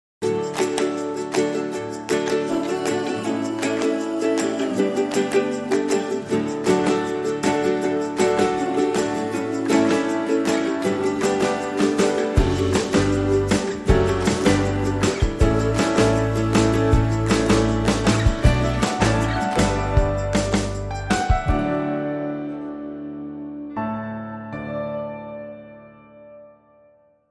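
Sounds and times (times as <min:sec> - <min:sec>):
jig music: 0:00.2 - 0:22.6.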